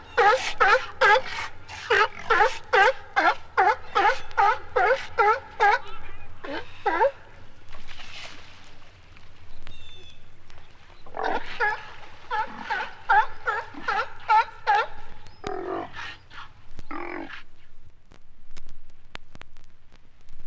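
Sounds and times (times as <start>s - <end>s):
sea lion barking: 0.0s - 7.6s, 11.1s - 17.8s.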